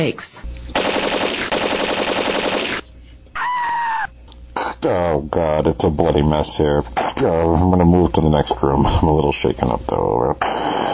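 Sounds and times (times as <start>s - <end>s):
speech: 0.0s - 0.4s, 4.8s - 10.8s
machine-gun burst gunfire sound effect: 0.7s - 2.9s.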